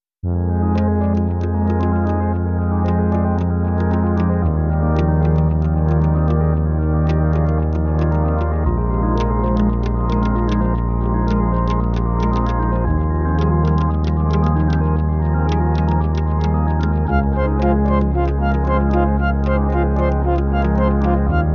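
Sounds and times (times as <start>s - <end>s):
healthy success patient underscore music: 0.6s - 21.5s.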